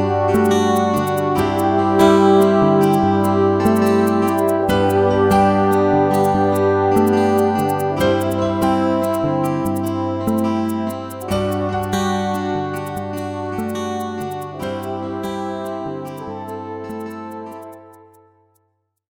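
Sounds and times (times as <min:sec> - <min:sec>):
folk music: 0:00.0 - 0:18.2.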